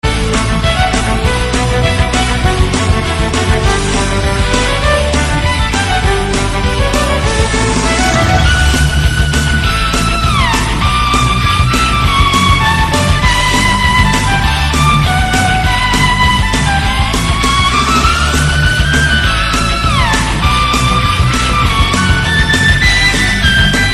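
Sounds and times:
violin: 0.0 - 23.9.

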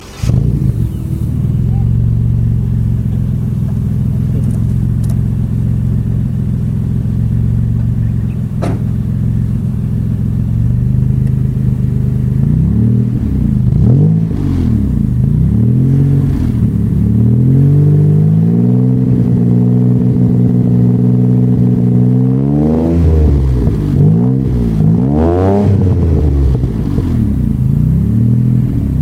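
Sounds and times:
WRX with big exhaust: 0.0 - 29.0.

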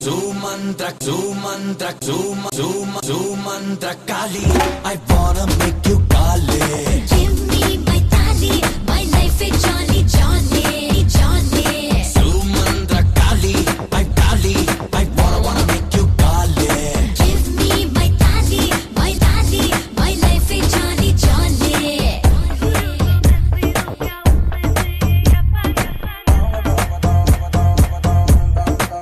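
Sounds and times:
mantra remix: 0.0 - 29.0.

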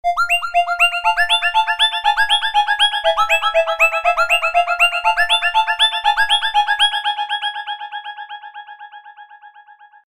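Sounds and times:
spooky SMS message tone: 0.1 - 7.0.

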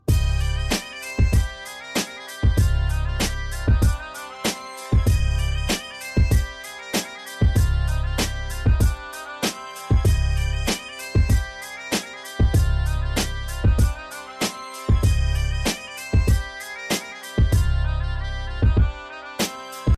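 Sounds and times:
bagpipes: 0.1 - 19.9.

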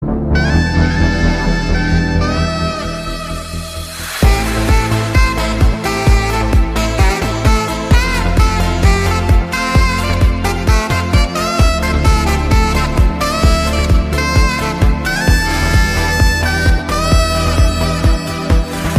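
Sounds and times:
saxophone: 0.0 - 18.9.

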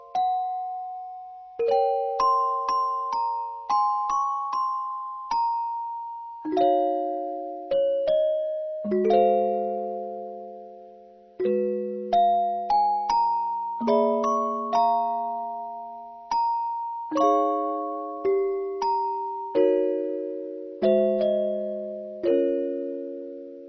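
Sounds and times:
music box: 0.0 - 23.6.

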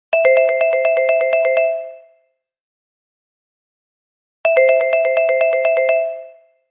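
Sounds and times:
xylophone: 0.2 - 2.1, 4.5 - 6.5.

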